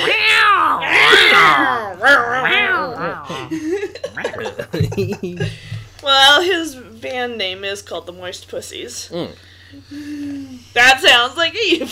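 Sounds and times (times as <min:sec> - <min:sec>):
person imitating an angry cat with yowls: 0:00.0 - 0:03.5, 0:04.2 - 0:04.7
laughter: 0:03.0 - 0:05.8
speech: 0:04.8 - 0:11.9.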